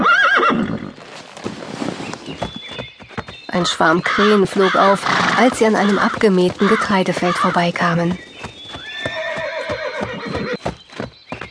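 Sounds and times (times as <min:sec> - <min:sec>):
pony whinnying in greeting: 0:00.0 - 0:01.0, 0:04.2 - 0:07.6, 0:08.8 - 0:10.6
clip-clopping hoofbeats: 0:02.0 - 0:11.4
speech: 0:03.6 - 0:08.3.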